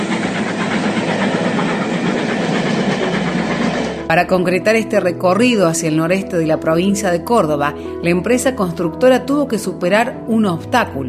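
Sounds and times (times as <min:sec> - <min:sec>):
steam train on the Córdoba and Northwest Railway running on rails: 0:00.0 - 0:06.0
speech: 0:04.1 - 0:11.0.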